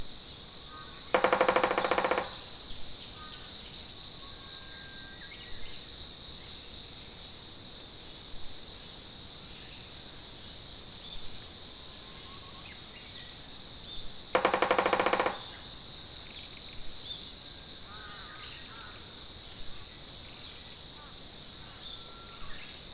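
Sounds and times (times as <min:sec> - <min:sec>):
Okinawa woodpecker: 0:01.1 - 0:02.9, 0:14.3 - 0:15.6.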